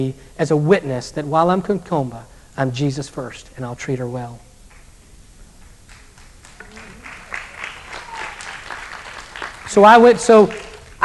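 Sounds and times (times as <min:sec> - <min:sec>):
speech: 0:00.0 - 0:04.5, 0:09.7 - 0:11.0
audience applause: 0:05.9 - 0:11.0.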